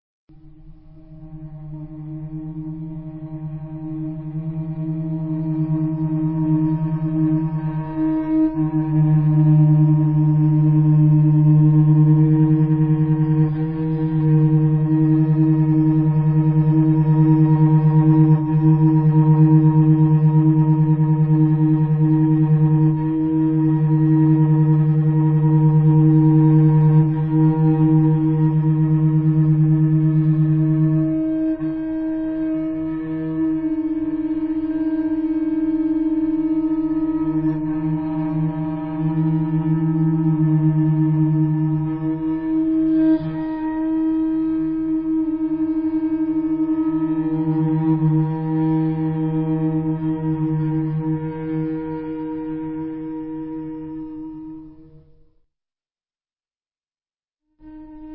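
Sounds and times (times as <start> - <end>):
cello music: 1.3 - 54.8.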